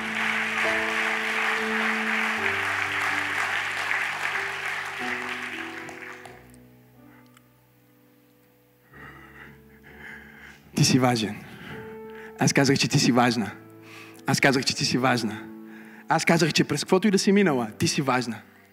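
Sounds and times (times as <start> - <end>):
church congregation clapping: 0.0 - 6.6
speech: 10.8 - 11.5, 12.4 - 13.6, 14.3 - 15.5, 16.1 - 18.5.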